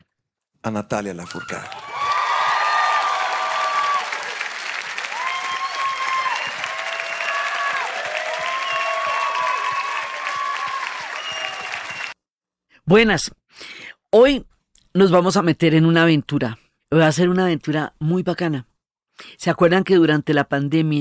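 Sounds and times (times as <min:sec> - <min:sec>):
speech: 0:00.6 - 0:01.9, 0:12.9 - 0:20.9
crowd applauding loudly, welcoming a performer onstage: 0:01.2 - 0:12.2
whistles and cheers from the crowd: 0:01.2 - 0:12.2.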